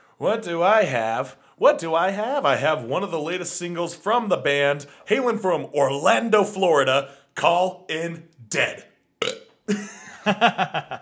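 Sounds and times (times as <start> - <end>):
speech: 0.2 - 8.9, 9.7 - 11.0
croaking burp: 9.2 - 9.6
laughter: 9.7 - 11.0.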